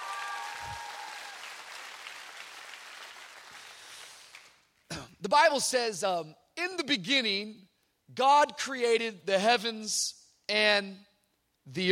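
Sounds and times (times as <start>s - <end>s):
audience applause: 0.0s - 4.6s
speech: 5.2s - 11.1s, 11.7s - 11.9s.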